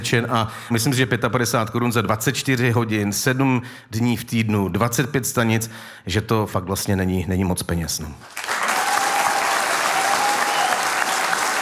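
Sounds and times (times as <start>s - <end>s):
speech: 0.0s - 8.6s
audience applause: 8.2s - 11.5s.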